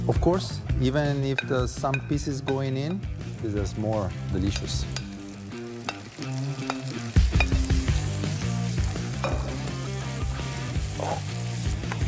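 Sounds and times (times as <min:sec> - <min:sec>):
speech: 0:00.1 - 0:05.0
vegetables sizzling in a frying pan as stirred: 0:03.1 - 0:12.0.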